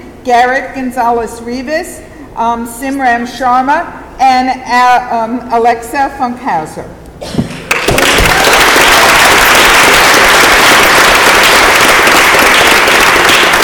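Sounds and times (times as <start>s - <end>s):
speech: 0.2s - 7.4s
audience applause: 7.7s - 13.6s.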